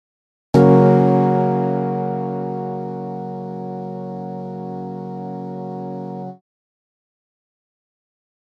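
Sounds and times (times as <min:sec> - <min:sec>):
Rocksichord keyboard: 0:00.6 - 0:06.4.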